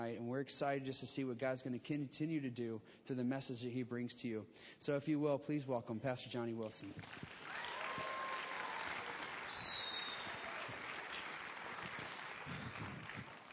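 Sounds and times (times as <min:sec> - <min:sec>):
speech: 0:00.0 - 0:08.1
audience applause: 0:07.0 - 0:13.5.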